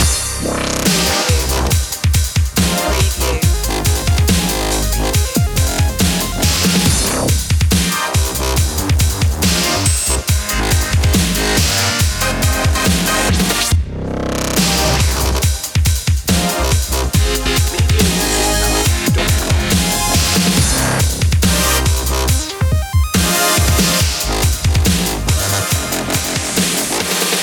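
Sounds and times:
dubstep music: 0.0 - 27.4.

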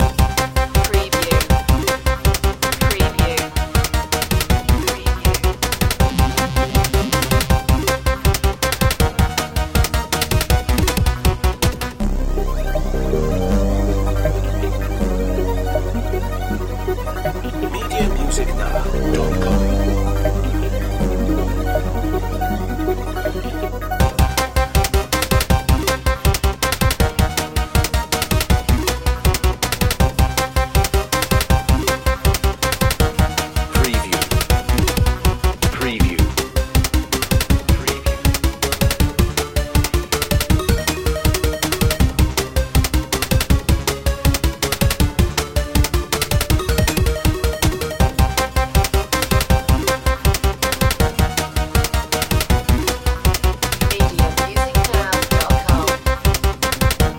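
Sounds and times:
retro video game countdown to zero: 0.0 - 57.1.

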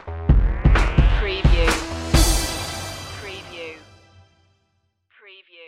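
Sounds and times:
TV stinger: 0.2 - 4.2.

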